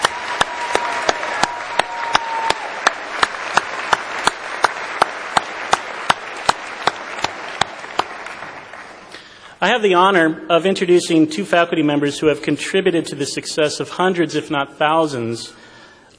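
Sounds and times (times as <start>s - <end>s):
audience applause: 0.0s - 9.4s
speech: 9.7s - 16.1s.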